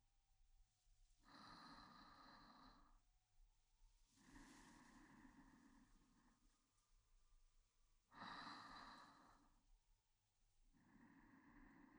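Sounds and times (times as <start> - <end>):
ASMR sleep voice: 1.1 - 3.1, 4.0 - 9.8, 10.5 - 11.9.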